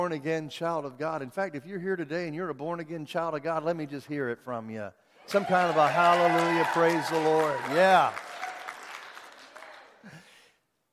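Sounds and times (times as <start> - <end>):
speech: 0.0 - 8.3
audience shouts and cheers: 5.2 - 9.0
audience clapping: 5.3 - 10.4.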